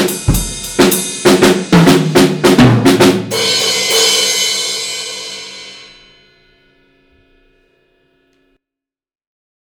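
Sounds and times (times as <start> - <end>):
drum kit: 0.0 - 6.6.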